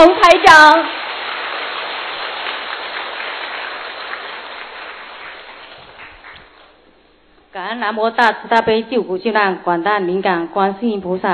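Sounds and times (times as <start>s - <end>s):
speech: 0.0s - 1.0s, 7.6s - 11.3s
warm applause: 0.0s - 6.8s.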